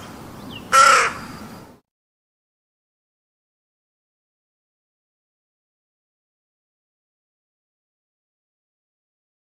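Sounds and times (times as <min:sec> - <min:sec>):
crow calling with harsh grating caws: 0:00.7 - 0:01.4.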